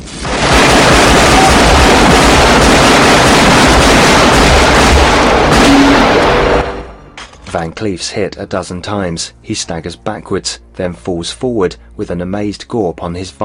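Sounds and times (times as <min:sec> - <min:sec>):
massive grenade explosion through an office window in a film action scene: 0:00.0 - 0:07.1
speech: 0:07.6 - 0:13.4.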